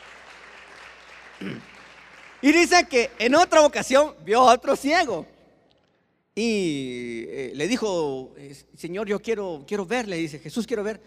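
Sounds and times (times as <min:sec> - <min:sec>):
audience applause: 0:00.0 - 0:03.4
speech: 0:01.4 - 0:01.7, 0:02.4 - 0:05.3, 0:06.4 - 0:11.0.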